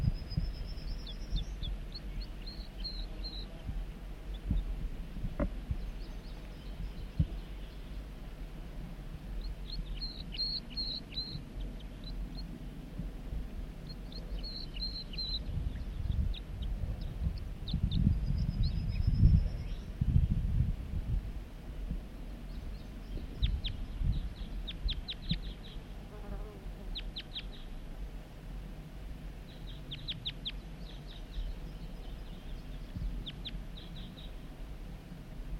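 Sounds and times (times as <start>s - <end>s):
wild male bird singing: 0.0s - 8.1s, 9.4s - 12.8s, 13.8s - 20.4s, 22.3s - 26.1s, 26.9s - 27.8s, 29.4s - 34.4s
steady low buzzing and rumbling background: 0.0s - 35.5s.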